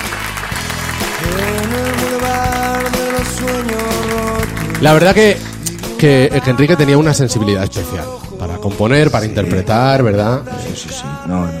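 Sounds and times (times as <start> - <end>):
audience applause: 0.0 - 6.0
speech: 4.8 - 11.5.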